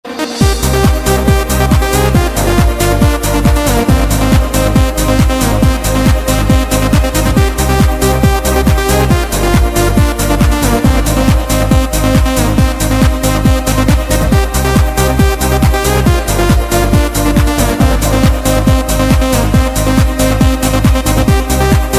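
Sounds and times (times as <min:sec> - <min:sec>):
Euro techno music: 0:00.0 - 0:21.9.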